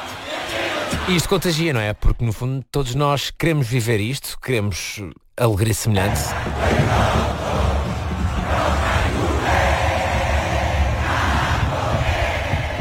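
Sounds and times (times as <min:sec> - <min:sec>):
street crowd in Paraguay celebrating: 0:00.0 - 0:01.2, 0:06.3 - 0:12.7
speech: 0:01.0 - 0:07.4.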